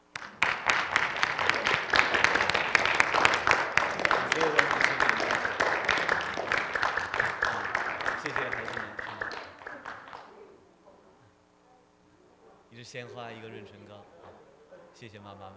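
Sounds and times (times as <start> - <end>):
audience applause: 0.0 - 11.3
laughter: 0.0 - 15.5
speech: 13.0 - 13.9, 15.0 - 15.5.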